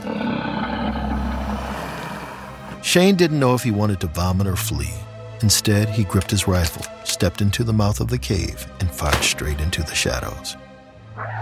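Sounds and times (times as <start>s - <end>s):
low guttural purr of a large beast: 0.0s - 2.8s
speech: 2.8s - 10.7s.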